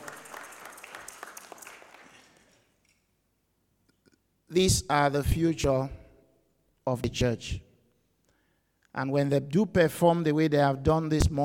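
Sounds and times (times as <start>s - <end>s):
children clapping: 0.0s - 2.6s
speech: 4.5s - 6.0s, 6.9s - 7.6s, 9.0s - 11.4s.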